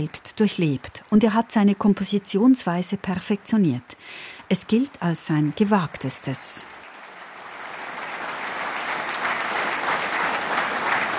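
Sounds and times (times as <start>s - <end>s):
speech: 0.0s - 6.8s
concert audience applause: 6.6s - 11.1s.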